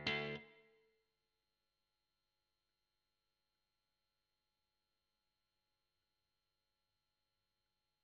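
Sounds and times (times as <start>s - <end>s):
guitar recorded with Royer microphone: 0.0s - 0.8s.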